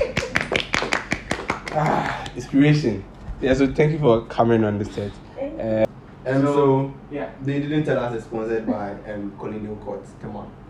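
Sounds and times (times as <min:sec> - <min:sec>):
sharp hand claps: 0:00.0 - 0:02.4
speech: 0:01.8 - 0:10.6.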